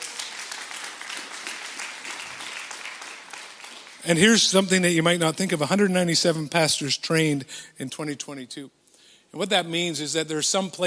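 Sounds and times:
audience applause: 0.0 - 4.5
speech: 4.0 - 10.8.

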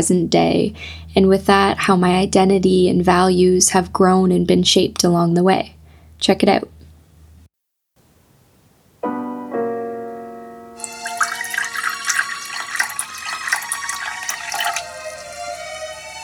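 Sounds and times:
speech: 0.0 - 6.8
coffee pouring into a cup: 10.8 - 16.2.

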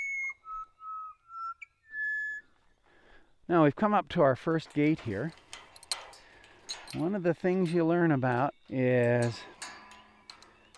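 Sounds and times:
pied butcherbird song: 0.0 - 2.6
speech: 3.5 - 5.4, 6.9 - 9.5.

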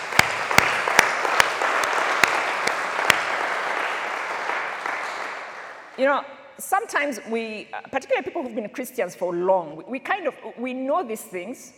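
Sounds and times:
audience applause: 0.0 - 6.0
speech: 6.0 - 11.7.

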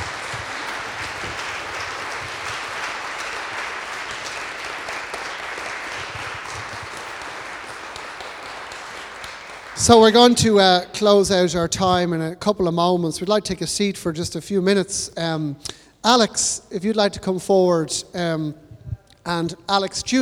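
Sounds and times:
audience applause: 0.0 - 10.9, 19.7 - 20.1
laughter: 0.0 - 12.1, 16.8 - 20.1
speech: 9.8 - 18.6, 19.2 - 20.1.

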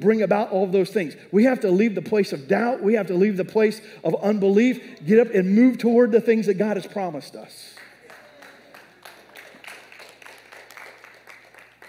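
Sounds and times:
speech: 0.0 - 7.8
audience applause: 7.8 - 11.8.

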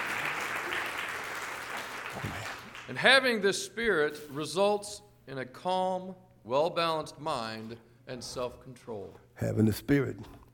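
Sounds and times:
crowd, audience hand clapping: 0.0 - 3.0
speech: 2.2 - 10.4.

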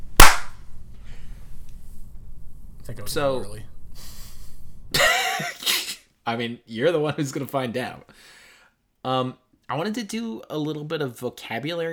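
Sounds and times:
hand clap: 0.2 - 0.5
speech: 2.9 - 3.7, 6.3 - 8.4, 9.0 - 11.9.

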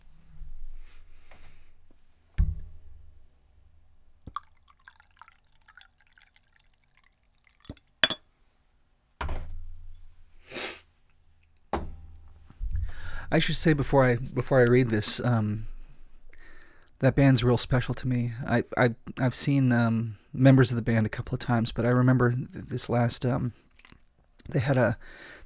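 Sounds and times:
coffee pouring into a cup: 4.2 - 8.1
speech: 13.3 - 15.7, 17.0 - 23.7, 24.5 - 25.4.

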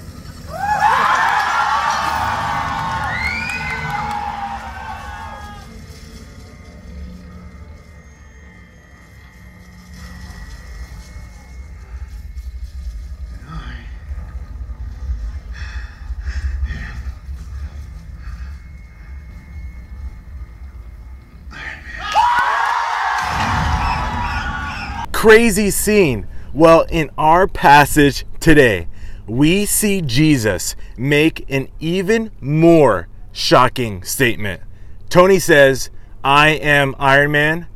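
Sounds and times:
low rumbling murmur of the audience: 0.0 - 22.0, 23.2 - 37.7
movie theater audience cheering wildly with screams and whoops: 0.5 - 5.7, 22.0 - 25.1
speech: 25.2 - 37.7.

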